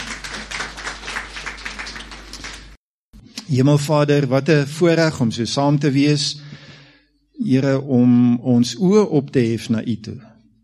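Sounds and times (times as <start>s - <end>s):
crowd applauding in welcome: 0.0s - 2.8s
speech: 3.5s - 6.4s, 7.4s - 10.3s.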